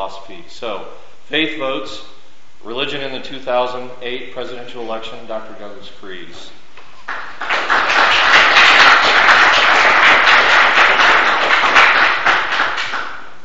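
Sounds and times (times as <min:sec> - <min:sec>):
speech: 0:00.1 - 0:08.4
crowd applauding: 0:07.1 - 0:13.3.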